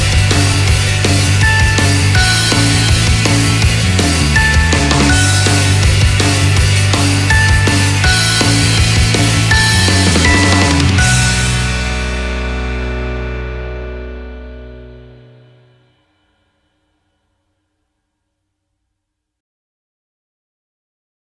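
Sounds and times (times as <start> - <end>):
off vocal instrumental music: 0.0 - 15.8.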